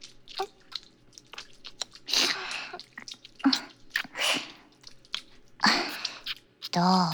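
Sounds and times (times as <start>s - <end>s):
ASMR ear licking mouth sounds: 0.0s - 7.1s.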